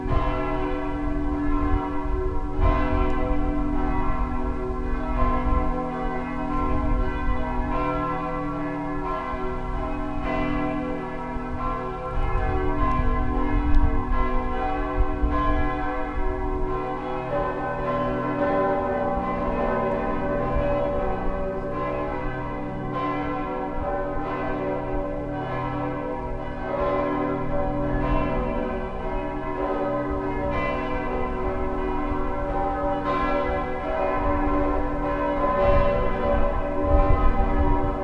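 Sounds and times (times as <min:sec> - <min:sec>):
large bells pealing: 0:00.0 - 0:38.0.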